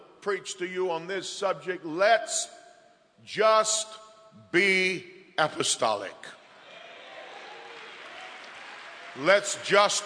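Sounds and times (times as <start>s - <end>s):
speech: 0.2s - 2.6s, 3.2s - 6.4s, 9.2s - 10.0s
audience applause: 6.8s - 10.0s.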